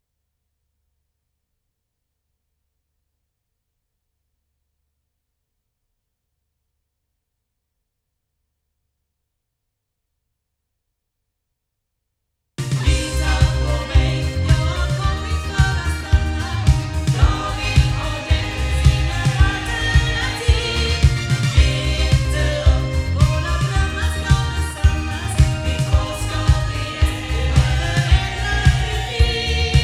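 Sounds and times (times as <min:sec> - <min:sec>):
loudspeakers: 0:12.6 - 0:29.8.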